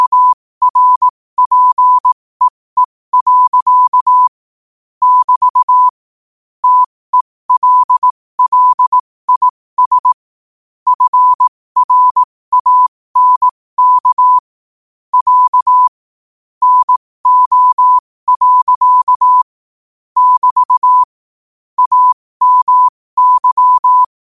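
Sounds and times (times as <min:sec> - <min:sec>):
morse code at 5 wpm: 0:00.0 - 0:04.3, 0:05.0 - 0:06.0, 0:06.6 - 0:10.2, 0:10.9 - 0:14.4, 0:15.1 - 0:15.9, 0:16.6 - 0:19.5, 0:20.2 - 0:21.1, 0:21.8 - 0:24.1.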